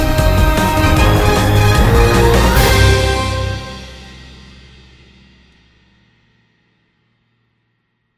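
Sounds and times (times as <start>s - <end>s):
tense music: 0.0s - 5.4s.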